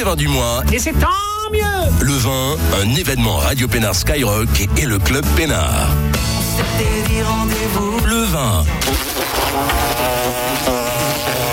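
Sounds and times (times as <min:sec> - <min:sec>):
speech: 0:00.0 - 0:10.8
wasp or hornet buzzing: 0:08.8 - 0:11.5.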